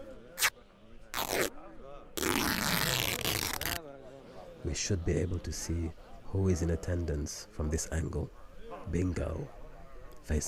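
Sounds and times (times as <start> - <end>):
tent fabric being torn open to make a small hole: 1.1 - 1.5, 2.2 - 3.8
speech: 4.7 - 9.6, 10.3 - 10.4.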